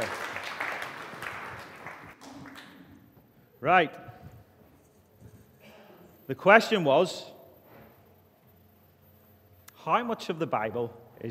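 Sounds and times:
group clapping: 0.0s - 3.2s
speech: 3.6s - 4.1s, 6.3s - 7.3s, 9.8s - 11.3s.

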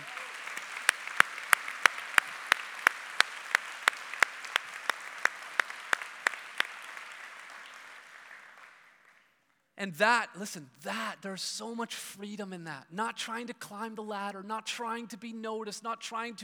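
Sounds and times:
steady clapping: 0.0s - 9.4s
speech: 9.8s - 16.4s.

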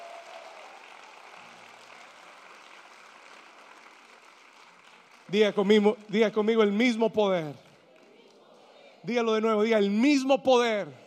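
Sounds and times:
audience applause: 0.0s - 8.4s
speech: 5.3s - 7.6s, 9.0s - 11.0s.

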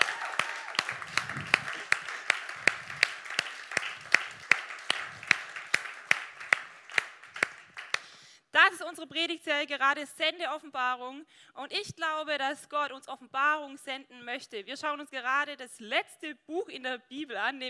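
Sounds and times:
audience applause: 0.0s - 8.1s
speech: 8.9s - 17.6s.

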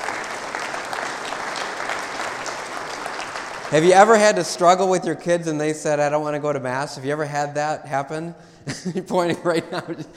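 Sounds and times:
audience applauding: 0.0s - 4.8s
speech: 3.7s - 10.1s
laughter: 8.7s - 10.1s.

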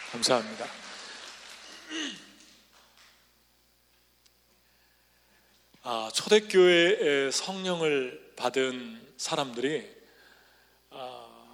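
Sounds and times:
audience applause: 0.0s - 2.2s
speech: 0.1s - 0.9s, 5.8s - 10.0s, 10.9s - 11.3s.

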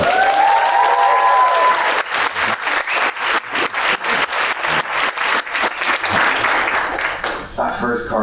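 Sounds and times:
audience applause: 0.0s - 7.5s
whistles: 2.7s - 3.2s.

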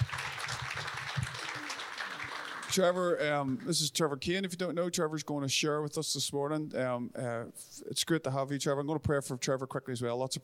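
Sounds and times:
audience applause: 0.0s - 3.2s
speech: 2.7s - 10.4s.

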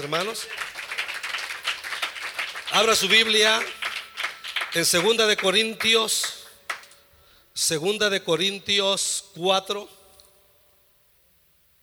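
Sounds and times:
speech: 0.0s - 0.8s, 2.8s - 3.8s, 4.7s - 6.4s, 7.6s - 10.0s
audience applause: 0.0s - 5.8s.

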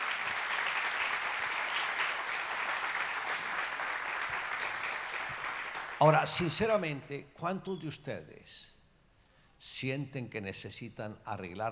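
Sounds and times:
audience applause: 0.0s - 6.2s
speech: 6.0s - 8.7s, 9.6s - 11.7s.

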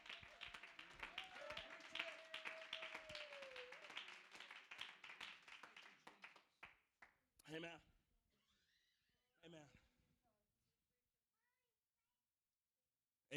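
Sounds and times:
audience clapping hands: 0.0s - 7.1s
speech: 7.5s - 7.9s, 9.4s - 9.8s.

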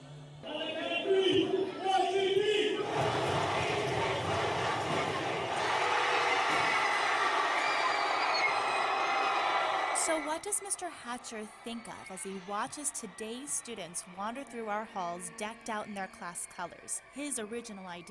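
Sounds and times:
large crowd of students shouting class cheers: 1.6s - 10.3s
speech: 10.4s - 18.0s.

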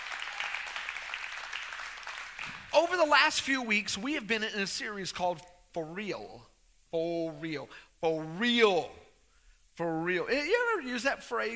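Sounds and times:
audience hand clapping: 0.0s - 2.8s
speech: 2.8s - 9.0s, 9.8s - 11.5s.

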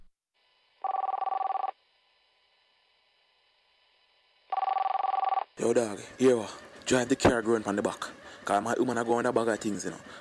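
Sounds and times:
phone ringing tone: 0.8s - 1.7s, 4.5s - 5.5s
phone line hum: 0.8s - 1.8s, 4.5s - 10.1s
speech: 5.6s - 10.1s.

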